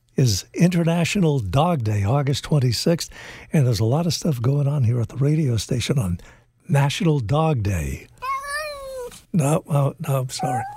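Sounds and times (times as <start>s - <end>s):
speech: 0.2s - 8.1s, 9.3s - 10.7s
cat meowing: 8.2s - 9.2s, 10.4s - 10.7s.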